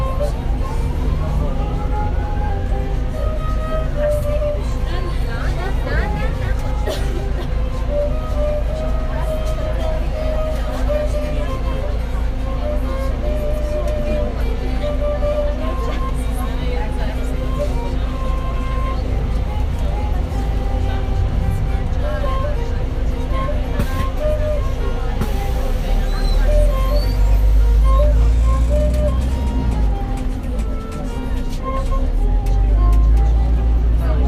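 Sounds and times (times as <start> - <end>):
bus engine rumble: 0.0 - 34.2
ghaychak played aboard a bus: 0.0 - 34.2
voices murmuring: 0.0 - 34.2.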